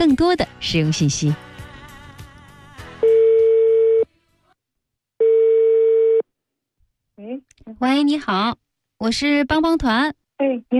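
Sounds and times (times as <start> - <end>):
speech: 0.0 - 1.5, 7.8 - 10.7
telephone ringback tone while calling a radio listener: 3.0 - 4.1, 5.2 - 6.2.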